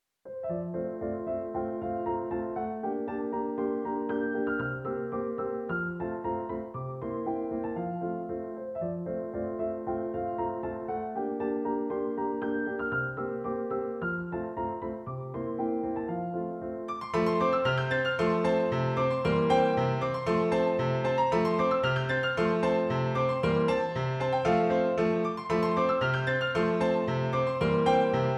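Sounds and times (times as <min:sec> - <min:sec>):
galop waltz for pianoforte: 0:00.2 - 0:28.3.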